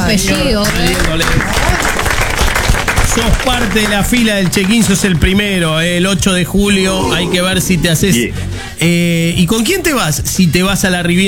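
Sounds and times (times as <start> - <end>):
audience applause: 0.0 - 5.6
speech: 0.1 - 1.9, 3.2 - 11.2.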